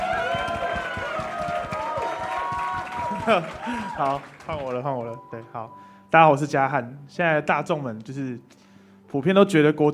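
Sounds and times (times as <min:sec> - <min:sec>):
audience clapping in welcome: 0:00.0 - 0:05.5
speech: 0:03.2 - 0:09.9.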